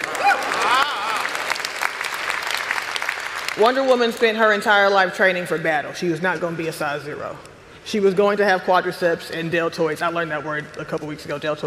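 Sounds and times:
audience applause: 0:00.0 - 0:04.0
speech: 0:03.6 - 0:11.6.

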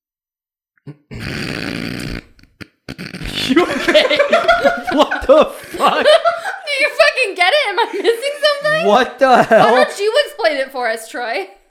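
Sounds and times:
speech: 0:00.8 - 0:01.6, 0:03.5 - 0:11.6
man clearing his sinuses snorting: 0:00.9 - 0:04.0
laughter: 0:03.3 - 0:10.2.

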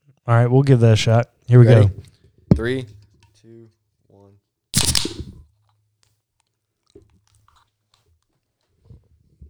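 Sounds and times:
speech: 0:00.2 - 0:03.0
beer can cracked open into microphones: 0:04.8 - 0:05.3.

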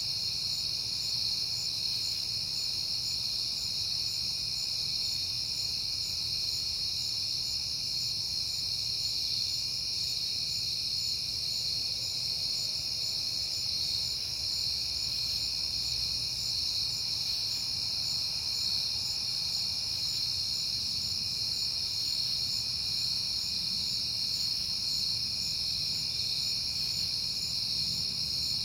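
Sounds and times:
crickets chirping in a chorus: 0:00.0 - 0:28.6.

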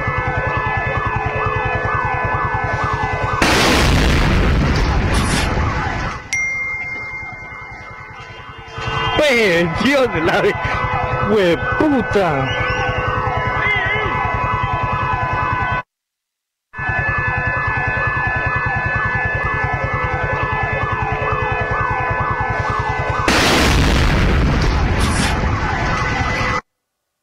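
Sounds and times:
emergency sirens: 0:00.0 - 0:15.9, 0:16.8 - 0:26.6
car bomb explosion: 0:03.4 - 0:06.0, 0:23.2 - 0:26.3
speech: 0:09.3 - 0:12.6.

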